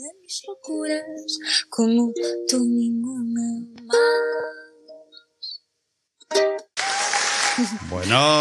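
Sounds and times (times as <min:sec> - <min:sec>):
speech: 0:00.3 - 0:04.3, 0:07.6 - 0:08.3
applause: 0:06.7 - 0:08.3.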